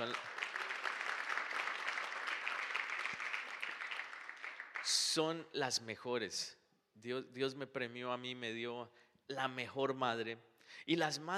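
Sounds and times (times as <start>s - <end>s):
audience applause for mothers: 0.0s - 5.2s
speech: 4.9s - 11.3s.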